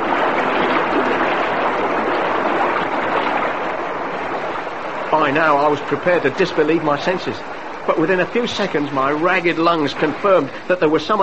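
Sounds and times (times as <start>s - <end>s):
gushing water: 0.0s - 11.2s
speech: 5.2s - 11.2s.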